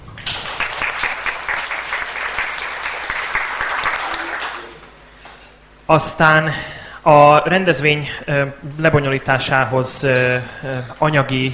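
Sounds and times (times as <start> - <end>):
crowd applauding: 0.0 - 5.0
speech: 5.9 - 11.5.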